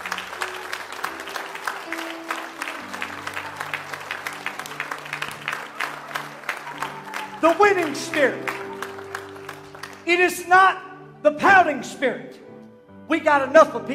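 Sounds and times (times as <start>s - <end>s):
audience applause: 0.0s - 10.1s
speech: 7.4s - 8.6s, 10.1s - 12.4s, 13.1s - 13.9s.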